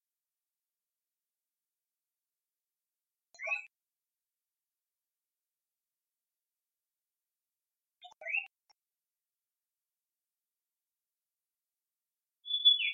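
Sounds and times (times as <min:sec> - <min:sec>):
iora song: 0:12.4 - 0:12.9.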